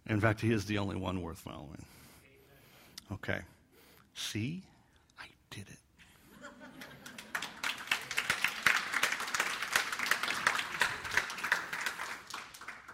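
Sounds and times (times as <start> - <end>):
speech: 0.1 - 2.0, 3.1 - 3.6, 4.2 - 5.8
laughter: 6.2 - 8.4
audience clapping: 6.8 - 12.9.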